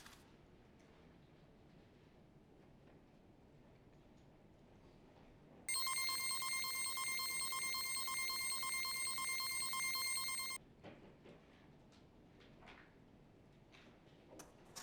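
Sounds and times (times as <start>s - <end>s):
machine running: 5.7s - 10.6s.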